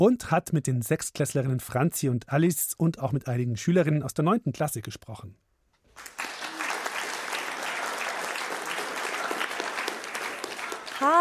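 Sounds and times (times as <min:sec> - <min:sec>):
speech: 0:00.0 - 0:06.1, 0:11.0 - 0:11.1
audience applause: 0:05.9 - 0:11.1.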